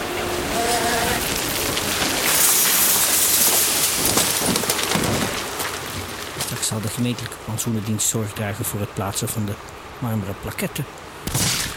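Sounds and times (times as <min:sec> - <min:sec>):
shovel loaders roaring back and forth: 0:00.0 - 0:07.4
speech: 0:06.8 - 0:11.5.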